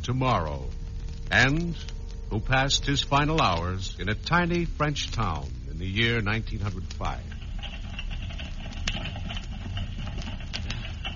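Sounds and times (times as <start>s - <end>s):
speech: 0.0s - 7.4s
wagon wheels rumbling along a street: 6.6s - 11.1s
horse hooves clopping: 7.0s - 11.1s.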